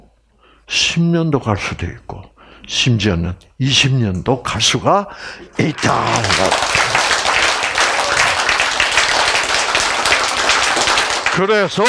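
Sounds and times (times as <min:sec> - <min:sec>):
speech: 0:00.7 - 0:06.8, 0:11.4 - 0:11.8
audience clapping: 0:05.4 - 0:11.8.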